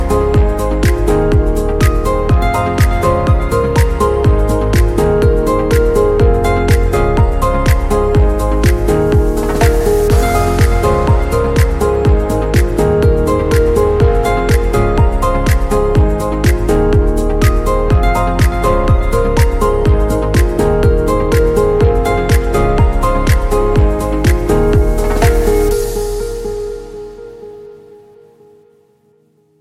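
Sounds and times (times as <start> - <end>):
romantic dynamic dance song: 0.0 - 28.0.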